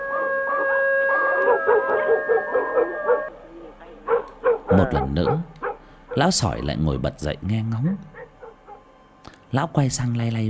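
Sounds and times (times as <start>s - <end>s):
dog howling: 0.0s - 6.7s, 7.8s - 9.1s
speech: 1.6s - 3.4s, 4.1s - 5.5s, 6.1s - 8.1s, 9.2s - 10.4s.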